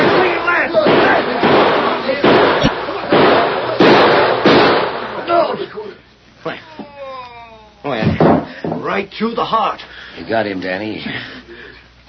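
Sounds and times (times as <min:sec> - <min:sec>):
gunshots in a gunfight: 0:00.0 - 0:05.3
speech: 0:09.2 - 0:11.4.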